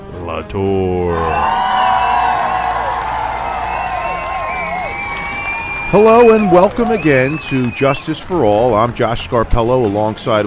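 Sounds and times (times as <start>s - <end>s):
speech: 0.2s - 1.6s, 5.9s - 10.4s
audience whoops and shouts: 1.1s - 7.8s
audience applauding for the hosts of a law and sports talk show: 1.1s - 10.4s.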